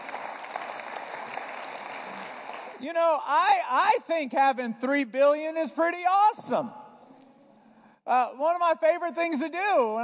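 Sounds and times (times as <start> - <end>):
audience applause: 0.0 - 2.8
speech: 2.8 - 6.8, 8.1 - 10.0.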